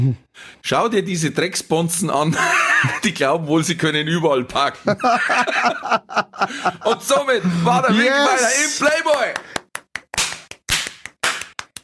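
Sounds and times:
speech: 0.0 - 9.5
laughter: 2.2 - 3.2, 4.8 - 9.0
audience clapping: 8.3 - 11.8.

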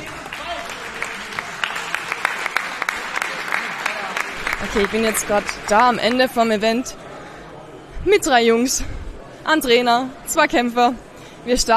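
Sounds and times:
audience applause: 0.0 - 6.4
speech: 4.6 - 7.0, 8.0 - 11.7.

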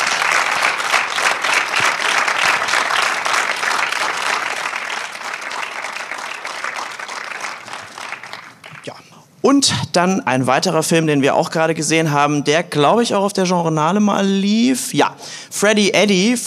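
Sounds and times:
audience applause: 0.0 - 8.8
speech: 9.5 - 16.4.

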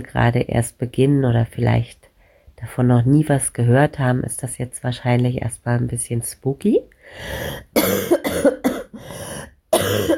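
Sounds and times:
speech: 0.0 - 2.0, 2.6 - 10.1
person coughing: 7.5 - 10.1.

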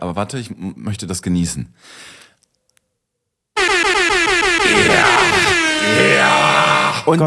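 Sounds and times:
speech: 0.1 - 2.2, 7.1 - 7.2
air horn sound-effect button: 3.6 - 7.0.

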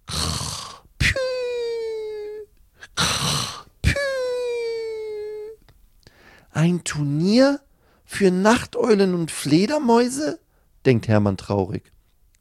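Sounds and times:
voice mimicking snoring: 0.0 - 5.1
speech: 6.6 - 12.0.

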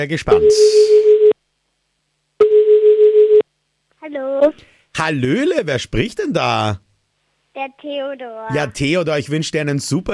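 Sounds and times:
speech: 0.0 - 1.3, 4.1 - 6.8, 7.6 - 10.1
telephone line tone on a call going through to Vienna: 0.3 - 1.4, 2.4 - 3.4.

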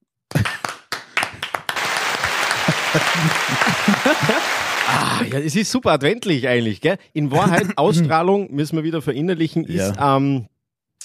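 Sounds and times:
small crowd clapping, added in post-production: 0.3 - 5.2
laughter: 1.8 - 5.3, 7.3 - 8.1
speech: 2.9 - 11.0.

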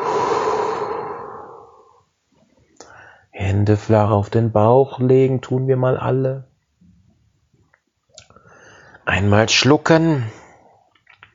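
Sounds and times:
deep breath in and out: 0.0 - 2.1, 2.8 - 3.3, 8.3 - 9.0
speech: 3.6 - 6.5, 9.1 - 10.4.

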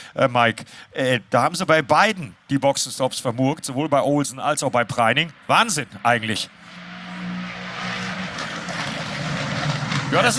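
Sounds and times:
speech: 0.1 - 6.8, 10.1 - 10.3
GT3 race cars driving past: 4.9 - 10.3.

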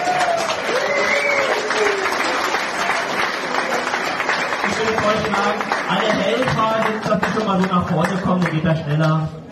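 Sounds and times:
whistles and cheers: 0.0 - 2.4
audience applause: 0.0 - 8.6
speech: 5.0 - 9.4.

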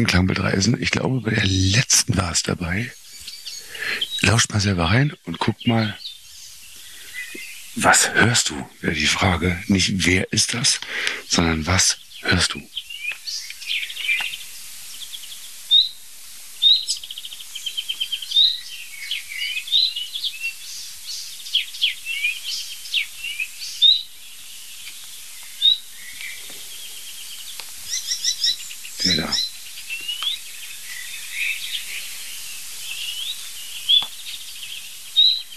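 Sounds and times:
speech: 0.0 - 3.0, 4.2 - 6.0, 7.8 - 12.8
nightingale singing: 0.0 - 35.5.

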